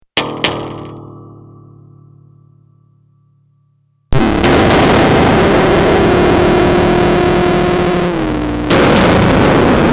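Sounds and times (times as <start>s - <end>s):
metal music: 0.2s - 9.8s.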